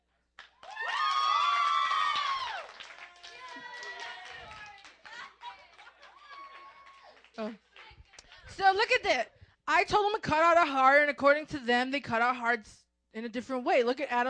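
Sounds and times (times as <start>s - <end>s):
scattered clapping: 0.4s - 8.6s
small audience cheering and whooping: 0.6s - 7.3s
speech: 7.4s - 7.6s, 8.6s - 14.2s.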